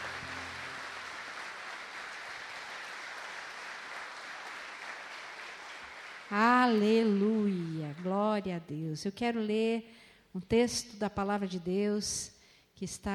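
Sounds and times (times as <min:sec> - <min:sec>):
audience applause: 0:00.0 - 0:07.8
speech: 0:06.3 - 0:13.1.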